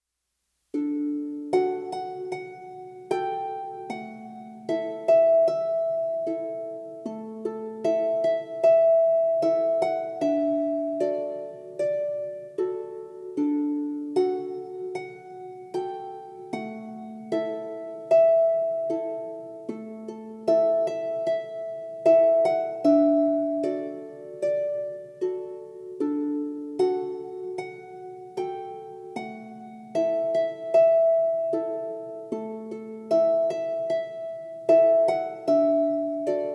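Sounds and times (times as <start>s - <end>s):
harp: 0.7s - 36.5s.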